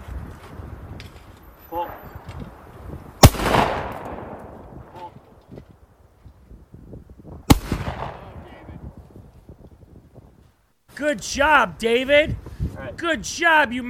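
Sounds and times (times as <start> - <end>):
gunshots from a man firing a gun: 3.2 - 5.1, 7.5 - 8.8
speech: 11.0 - 12.4, 13.0 - 13.8.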